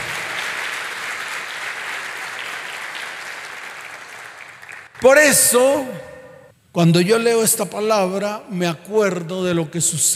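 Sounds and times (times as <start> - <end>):
applause: 0.0 - 5.6
speech: 5.0 - 6.1, 6.8 - 10.1.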